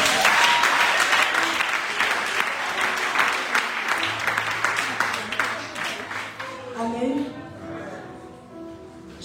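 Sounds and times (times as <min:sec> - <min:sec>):
church congregation applauding to acclaim Jesus: 0:00.0 - 0:07.4.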